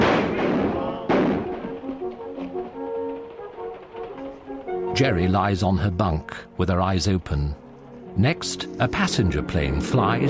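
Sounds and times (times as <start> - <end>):
hunters firing guns: 0.0 - 2.8
speech: 5.0 - 7.6, 8.2 - 10.2.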